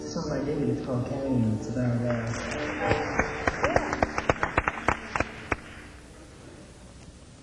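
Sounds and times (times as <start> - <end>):
speech: 0.1 - 3.3
concert audience clapping: 1.8 - 6.0.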